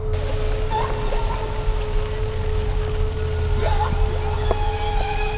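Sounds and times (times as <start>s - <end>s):
whale call: 0.2s - 2.4s, 3.3s - 5.3s.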